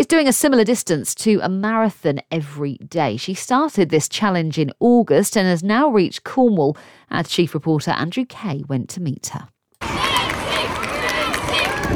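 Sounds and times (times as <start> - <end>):
speech: 0.1 - 10.1
schoolchildren lining a street cheering on a passing runner: 9.8 - 11.9.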